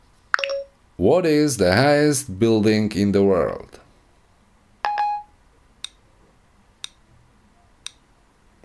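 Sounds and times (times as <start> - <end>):
Siri activation button press chime: 0.4 - 0.7
speech: 1.0 - 3.8.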